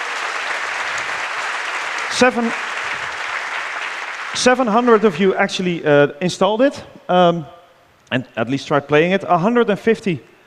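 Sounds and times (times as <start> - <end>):
audience applause: 0.0 - 5.4
speech: 2.1 - 2.7, 4.3 - 10.3.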